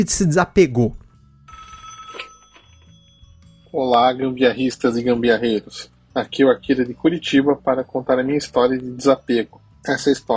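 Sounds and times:
speech: 0:00.0 - 0:01.0, 0:03.7 - 0:10.3
telephone ringing for a listener's call to a radio show: 0:01.4 - 0:03.7.

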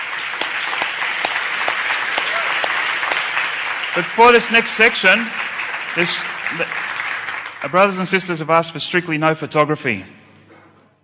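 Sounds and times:
audience clapping: 0:00.0 - 0:08.5
speech: 0:04.0 - 0:05.4, 0:06.0 - 0:06.9, 0:07.6 - 0:10.2.

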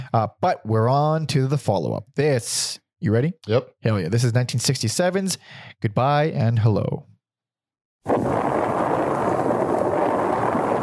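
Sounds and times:
speech: 0:00.1 - 0:07.1
bomb-like explosion noise opening a 1967 album: 0:08.1 - 0:10.8.

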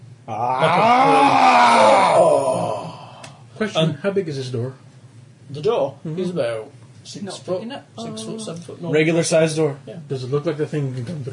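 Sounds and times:
speech: 0:00.3 - 0:01.3, 0:03.6 - 0:11.3
voice imitating a monster roar: 0:00.3 - 0:03.2.

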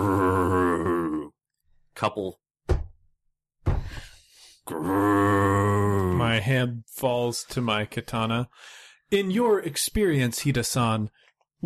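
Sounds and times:
voice imitating a creature's loud growl: 0:00.0 - 0:01.4, 0:04.7 - 0:06.4
speech: 0:02.0 - 0:02.4, 0:04.7 - 0:11.2.

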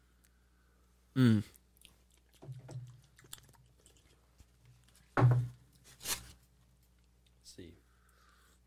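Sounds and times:
speech: 0:01.2 - 0:01.6
biting and chewing a strawberry yellow cake pastry: 0:01.6 - 0:05.2.

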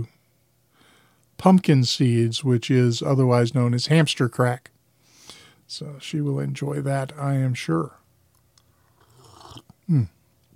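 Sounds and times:
speech: 0:01.4 - 0:04.8, 0:05.7 - 0:08.0, 0:09.9 - 0:10.2
person sipping coffee: 0:08.4 - 0:10.1
gulp: 0:08.9 - 0:10.2.

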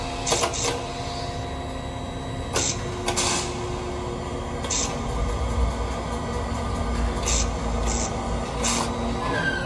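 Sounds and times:
theme park ride generator droning: 0:00.0 - 0:09.6.

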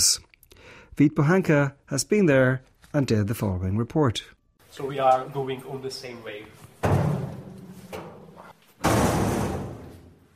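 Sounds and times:
speech: 0:01.0 - 0:06.7
heavy door shutting tight: 0:06.8 - 0:10.3.

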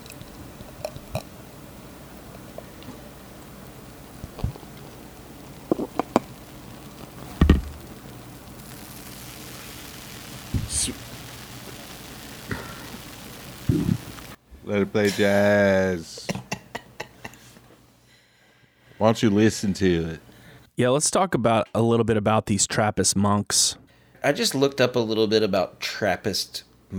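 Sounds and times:
beer head fizzing: 0:00.0 - 0:17.9, 0:19.4 - 0:20.6
speech: 0:14.8 - 0:16.2, 0:19.1 - 0:26.9.

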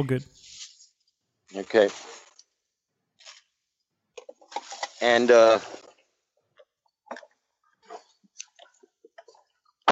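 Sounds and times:
speech: 0:00.0 - 0:00.5, 0:01.5 - 0:02.2, 0:05.0 - 0:05.8
faint clicks and rustles: 0:01.9 - 0:02.6, 0:03.2 - 0:09.8.

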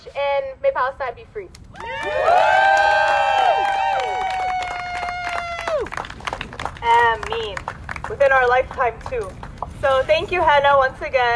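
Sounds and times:
speech: 0:00.1 - 0:02.6, 0:06.8 - 0:11.3
crowd cheering: 0:01.8 - 0:08.2
scattered clapping: 0:01.8 - 0:09.8.

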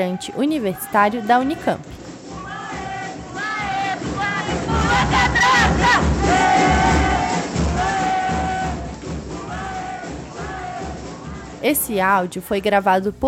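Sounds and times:
speech: 0:00.0 - 0:02.0, 0:11.6 - 0:13.2
students shouting protest chants: 0:00.0 - 0:11.6.

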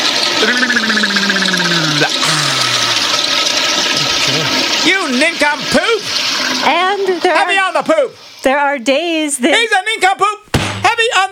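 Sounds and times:
toilet flushing: 0:00.0 - 0:08.5
speech: 0:00.4 - 0:01.1, 0:04.9 - 0:10.4, 0:11.0 - 0:11.3.

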